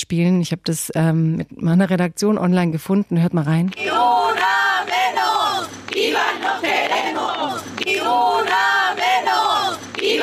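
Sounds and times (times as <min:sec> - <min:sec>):
speech: 0:00.0 - 0:08.7
women chanting in unison on a night-time protest march through an old town: 0:03.7 - 0:10.2
crowd shouting: 0:03.8 - 0:10.2.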